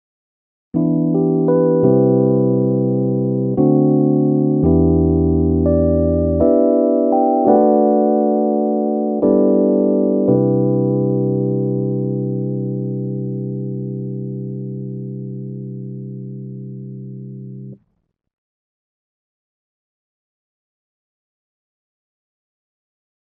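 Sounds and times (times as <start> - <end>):
electric piano through Korg SDD 3000 effect: 0.8 - 17.8.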